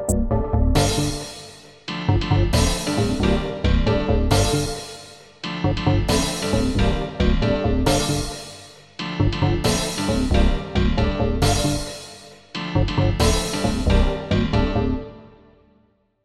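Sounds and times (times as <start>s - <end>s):
Christmas piano house music: 0.0s - 15.1s.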